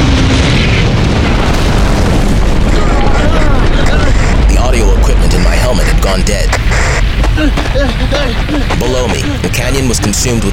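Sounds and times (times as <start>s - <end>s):
battleship crashing into a canyon and exploding: 0.0s - 10.5s
laughter: 7.2s - 9.9s
speech: 9.8s - 10.5s.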